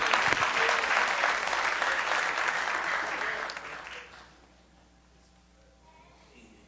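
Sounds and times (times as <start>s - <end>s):
room full of people applauding singers: 0.0s - 4.4s.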